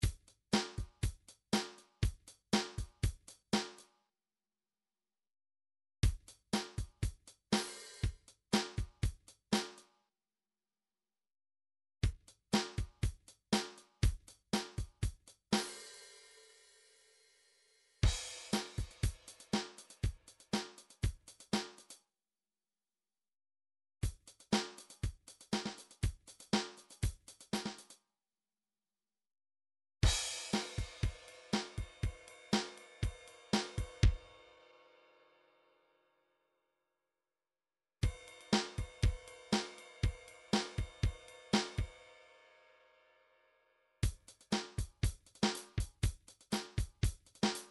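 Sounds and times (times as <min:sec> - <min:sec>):
midi drums: 0:00.0 - 0:03.8, 0:06.0 - 0:09.8, 0:12.0 - 0:15.8, 0:18.0 - 0:22.0, 0:24.0 - 0:28.0, 0:30.0 - 0:34.4, 0:38.0 - 0:42.0, 0:44.0 - 0:47.6.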